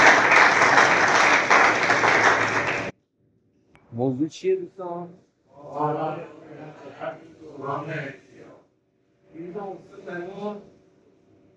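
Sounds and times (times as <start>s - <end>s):
audience applause: 0.0s - 2.9s
speech: 4.0s - 8.2s, 9.4s - 10.7s.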